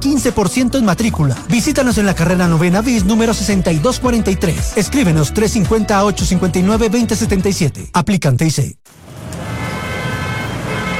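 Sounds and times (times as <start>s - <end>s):
speech: 0.0s - 9.0s
car horns honking in a traffic jam: 9.4s - 10.9s.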